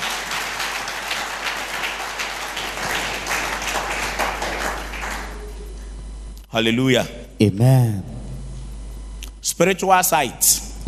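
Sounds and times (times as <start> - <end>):
audience clapping: 0.0 - 5.9
speech: 6.6 - 8.2, 9.5 - 10.7.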